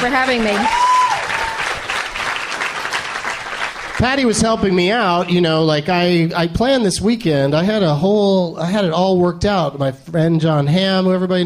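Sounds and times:
speech: 0.0 - 0.8, 4.0 - 11.4
audience round of applause: 0.0 - 5.7.

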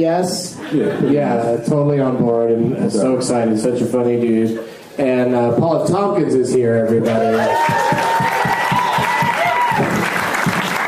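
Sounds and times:
speech: 0.0 - 8.3
steady hand clapping: 7.6 - 10.8.

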